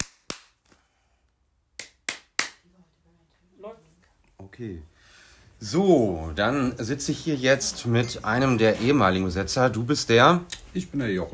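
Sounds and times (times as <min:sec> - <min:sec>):
hands clapping: 0:00.0 - 0:00.9, 0:01.8 - 0:02.7
speech: 0:04.6 - 0:04.9, 0:05.6 - 0:11.3.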